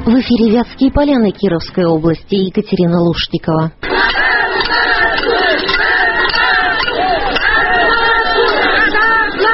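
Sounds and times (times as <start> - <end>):
speech: 0.2 - 4.3
large crowd shouting and chanting at a workers' rally: 3.8 - 9.5.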